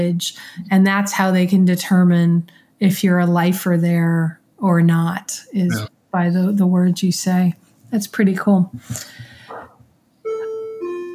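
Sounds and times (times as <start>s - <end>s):
speech: 0.0s - 9.3s
faint noise: 4.1s - 9.9s
doorbell chiming ding-dong: 10.3s - 11.1s.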